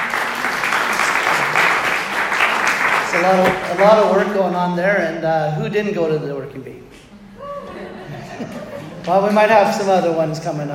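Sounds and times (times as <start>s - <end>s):
audience applauding: 0.0s - 4.4s
speech: 3.1s - 7.0s, 8.4s - 10.7s
laughter: 7.2s - 9.7s.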